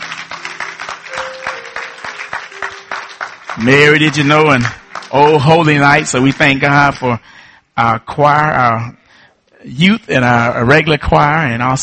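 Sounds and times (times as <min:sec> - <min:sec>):
congregation applause in a church service: 0:00.0 - 0:07.3
speech: 0:03.6 - 0:09.0, 0:09.6 - 0:11.8.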